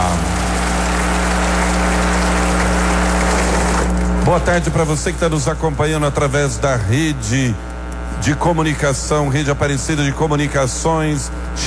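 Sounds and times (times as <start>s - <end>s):
audience applause: 0.0s - 4.8s
speech: 4.3s - 11.6s.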